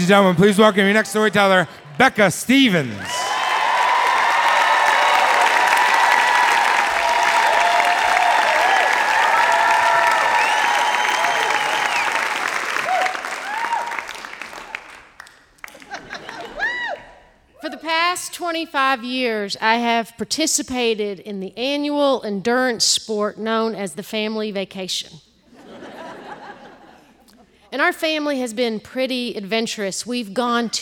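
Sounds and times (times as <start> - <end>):
speech: 0.0 - 3.2, 18.5 - 25.3, 27.7 - 30.8
audience applause and cheering: 0.0 - 17.4
laughter: 15.7 - 17.2, 25.5 - 27.7.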